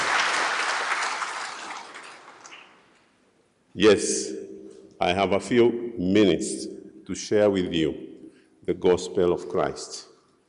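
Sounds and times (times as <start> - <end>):
crowd applause: 0.0 - 2.8
speech: 3.8 - 4.4, 5.0 - 8.1, 8.7 - 10.1.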